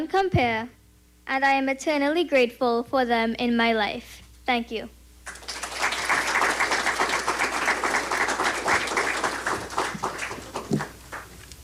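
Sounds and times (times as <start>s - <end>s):
speech: 0.0s - 5.0s
audience applause: 5.3s - 11.4s.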